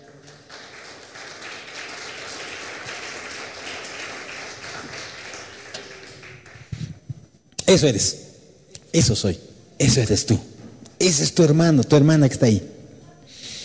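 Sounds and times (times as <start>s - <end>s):
audience applauding: 0.0s - 6.8s
speech: 7.7s - 8.2s, 8.9s - 12.8s.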